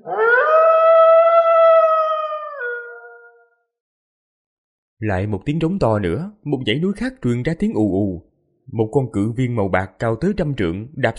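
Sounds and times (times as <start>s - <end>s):
wolf howl sound effect: 0.0s - 3.6s
speech: 5.0s - 11.1s.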